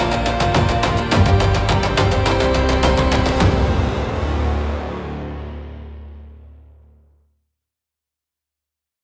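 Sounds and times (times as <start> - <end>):
cinematic Japanese style battle music: 0.0 - 6.8.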